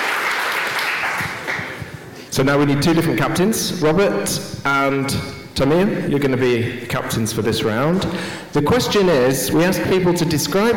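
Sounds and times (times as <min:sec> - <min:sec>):
round of applause: 0:00.0 - 0:01.8
speech: 0:02.4 - 0:10.7.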